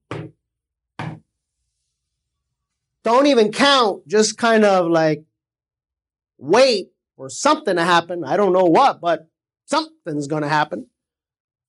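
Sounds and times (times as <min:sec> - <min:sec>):
slow knocking on a door: 0:00.0 - 0:00.4, 0:01.0 - 0:01.3
speech: 0:03.0 - 0:05.3, 0:06.4 - 0:10.9.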